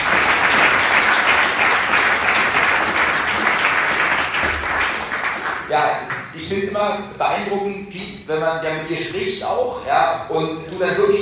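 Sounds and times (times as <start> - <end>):
audience applause: 0.0 - 5.8
speech: 6.4 - 11.1.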